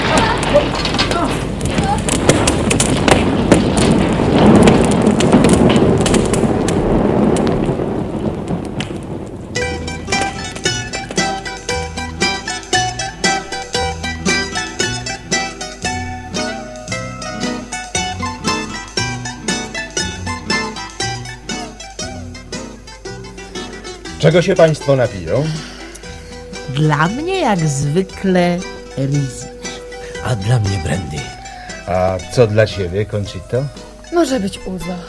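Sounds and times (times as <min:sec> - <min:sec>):
fire raging, bushes burning and crackling: 0:00.0 - 0:35.0
rhythmic music with a steady beat: 0:09.6 - 0:24.2
speech: 0:24.3 - 0:25.7, 0:26.8 - 0:29.5, 0:30.2 - 0:31.3, 0:31.9 - 0:35.0.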